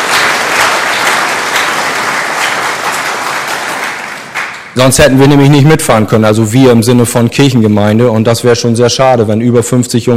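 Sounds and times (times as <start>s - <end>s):
church congregation applauding confirmation students: 0.0s - 4.8s
speech: 4.8s - 10.1s.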